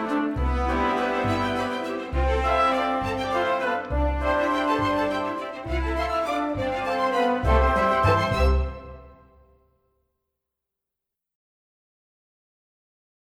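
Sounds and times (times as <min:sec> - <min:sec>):
waltz underscore music: 0:00.0 - 0:09.4.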